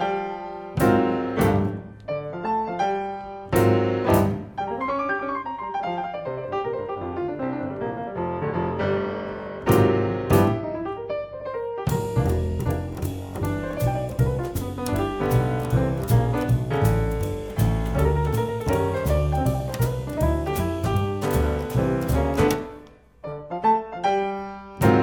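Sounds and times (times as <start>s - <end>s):
blues music: 0.2s - 7.1s, 7.6s - 11.1s, 11.9s - 23.5s, 24.4s - 25.0s.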